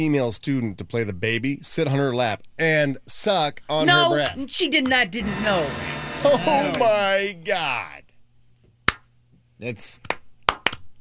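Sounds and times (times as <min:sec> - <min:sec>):
speech: 0:00.0 - 0:08.0, 0:09.6 - 0:10.2
audience clapping: 0:10.1 - 0:10.8.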